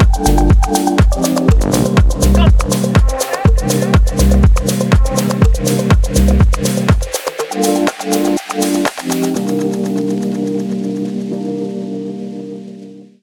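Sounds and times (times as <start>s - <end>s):
chill lounge music: 0.0s - 13.2s.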